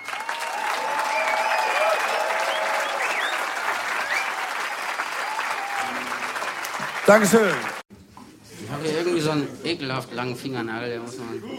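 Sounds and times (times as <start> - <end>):
audience applause: 0.0 - 7.8
speech: 7.1 - 7.8, 8.8 - 11.5.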